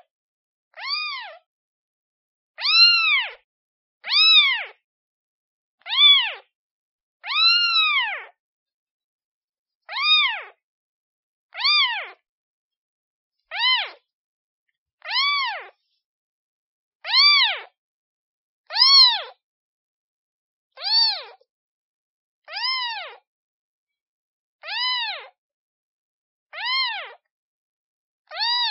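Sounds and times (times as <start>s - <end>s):
kitten meowing calling for its mother: 0.8s - 1.4s, 2.6s - 3.4s, 4.0s - 4.8s, 5.8s - 6.5s, 7.2s - 8.3s, 9.9s - 10.6s, 11.5s - 12.2s, 13.5s - 14.0s, 15.0s - 15.8s, 17.0s - 17.7s, 18.7s - 19.4s, 20.8s - 21.4s, 22.5s - 23.2s, 24.6s - 25.3s, 26.6s - 27.2s, 28.3s - 28.6s.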